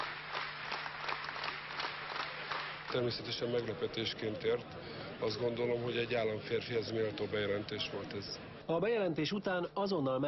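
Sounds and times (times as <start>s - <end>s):
delegates applauding in a hall after a speech: 0.0s - 4.2s
speech: 2.9s - 10.2s.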